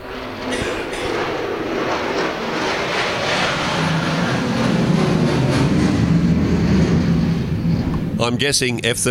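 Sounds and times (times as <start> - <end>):
F-35 fighter jet flying overhead: 0.0 - 9.0
speech: 8.3 - 9.0.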